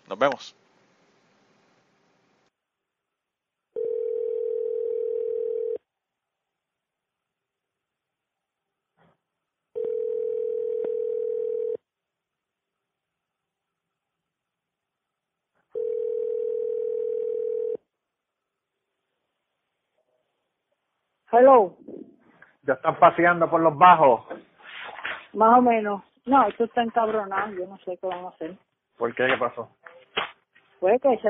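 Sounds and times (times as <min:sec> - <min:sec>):
speech: 0:00.1 - 0:00.6, 0:21.4 - 0:21.8, 0:22.6 - 0:24.5, 0:25.3 - 0:29.9, 0:30.8 - 0:31.2
telephone ringing tone on an outgoing call: 0:03.8 - 0:05.8, 0:09.8 - 0:11.8, 0:15.7 - 0:17.8.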